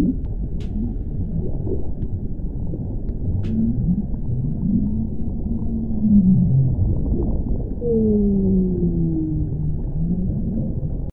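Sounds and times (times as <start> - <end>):
low rumbling background: 0.0 - 11.1
whale moans: 3.5 - 11.0.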